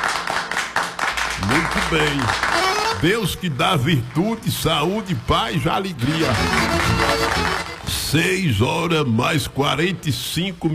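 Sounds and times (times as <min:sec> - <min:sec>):
applause: 0:00.0 - 0:08.1
speech: 0:01.4 - 0:10.7.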